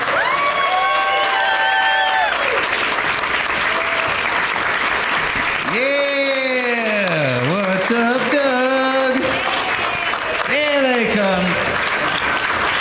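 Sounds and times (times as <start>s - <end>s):
cheering voices and shouts: 0.0s - 2.7s, 5.6s - 11.6s
live audience applause in San Antonio: 0.0s - 12.8s.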